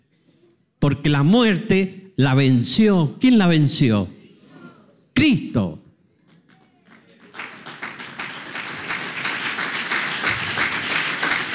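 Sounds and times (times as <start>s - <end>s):
speech: 0.8s - 4.2s, 5.2s - 5.8s
audience applause: 6.3s - 11.5s.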